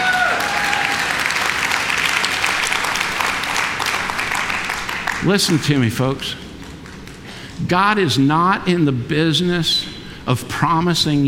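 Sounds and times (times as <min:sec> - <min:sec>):
golf clap: 0:00.0 - 0:05.8
speech: 0:05.2 - 0:06.4, 0:07.6 - 0:11.2.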